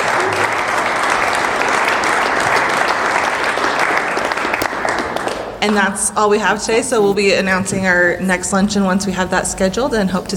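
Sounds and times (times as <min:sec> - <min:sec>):
audience applause: 0:00.0 - 0:05.8
speech: 0:05.6 - 0:10.3.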